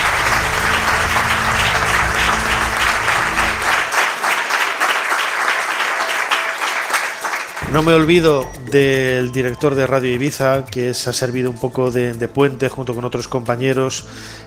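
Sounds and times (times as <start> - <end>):
low rumble: 0.0 - 3.9, 7.6 - 9.0
audience applause: 0.0 - 8.1
speech: 7.7 - 14.4.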